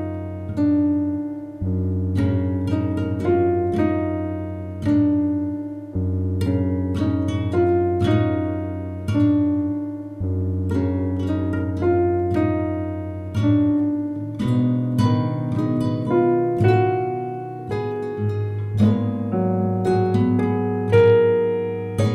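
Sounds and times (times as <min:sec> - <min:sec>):
solo piano: 0:00.0 - 0:22.1.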